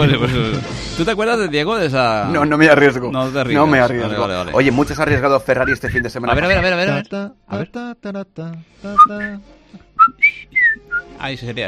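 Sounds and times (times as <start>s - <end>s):
speech: 0.0s - 11.6s
whistling a tune: 5.6s - 6.2s, 8.9s - 9.4s, 10.0s - 11.2s.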